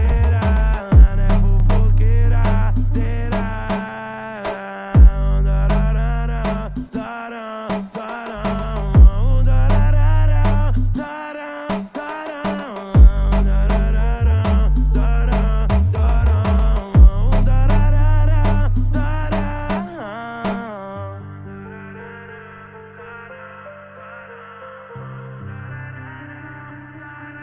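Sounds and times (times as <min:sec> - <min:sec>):
retro bass: 0:00.0 - 0:03.8, 0:05.0 - 0:07.0, 0:08.4 - 0:11.0, 0:13.0 - 0:19.8.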